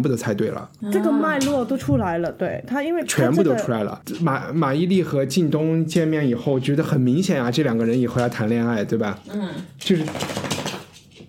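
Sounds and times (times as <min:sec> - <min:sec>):
speech: 0:00.0 - 0:10.4
dog shaking itself off: 0:09.8 - 0:11.2.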